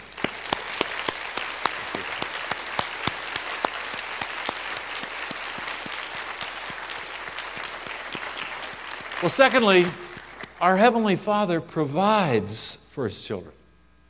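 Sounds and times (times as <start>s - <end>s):
audience applause for fathers: 0.0s - 10.8s
speech: 9.2s - 10.0s, 10.6s - 13.6s.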